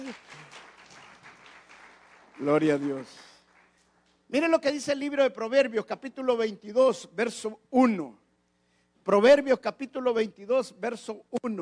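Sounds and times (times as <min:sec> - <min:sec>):
audience applause: 0:00.0 - 0:03.9
speech: 0:02.4 - 0:03.2, 0:04.3 - 0:08.2, 0:09.0 - 0:11.6.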